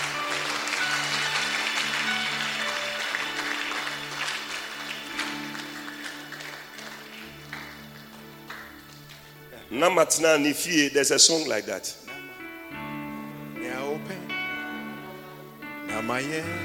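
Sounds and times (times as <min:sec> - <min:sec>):
crowd clapping: 0:00.0 - 0:09.7
sustained low keyboard chords: 0:00.0 - 0:16.6
speech: 0:09.7 - 0:12.0, 0:16.2 - 0:16.6.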